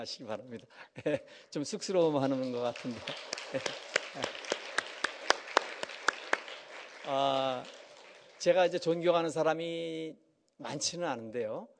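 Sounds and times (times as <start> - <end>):
speech: 0.0 - 4.6, 7.1 - 7.8, 8.4 - 11.7
steady clapping: 2.3 - 9.0.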